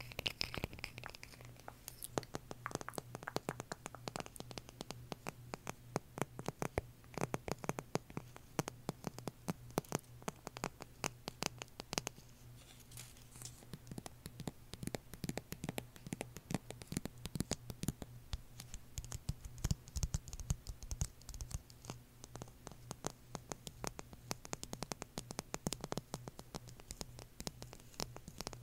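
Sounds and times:
dense rapid tapping clicks: 0.9s - 12.1s, 13.7s - 28.6s.

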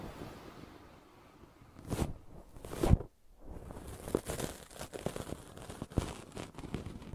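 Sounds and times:
brushing and scratching: 1.8s - 7.1s.

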